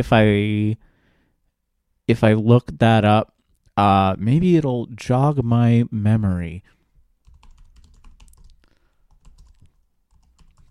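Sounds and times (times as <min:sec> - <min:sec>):
speech: 0:00.0 - 0:00.9, 0:02.1 - 0:06.8
typing on a computer keyboard: 0:07.2 - 0:10.6.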